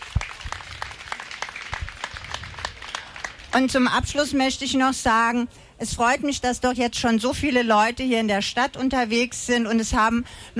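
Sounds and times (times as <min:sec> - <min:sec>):
audience applause: 0:00.0 - 0:03.6
speech: 0:03.6 - 0:10.5.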